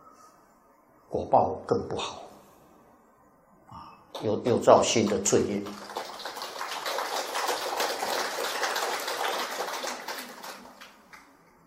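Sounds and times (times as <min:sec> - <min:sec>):
speech: 0:01.1 - 0:02.2, 0:04.2 - 0:05.9
audience applause: 0:04.9 - 0:11.3.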